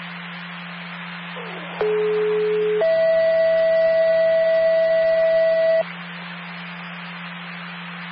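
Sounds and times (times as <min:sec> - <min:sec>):
radio dispatch test tone: 0:01.4 - 0:05.8.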